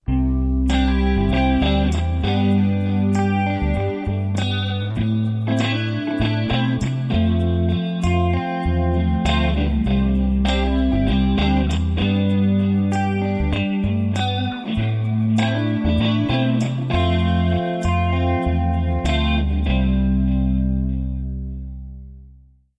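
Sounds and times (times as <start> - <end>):
music without drums: 0.0 - 22.6.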